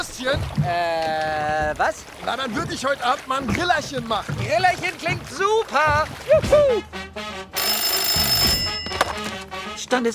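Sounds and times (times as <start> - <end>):
speech: 0.2 - 7.6, 9.8 - 10.1
telephone ringing: 7.6 - 9.3.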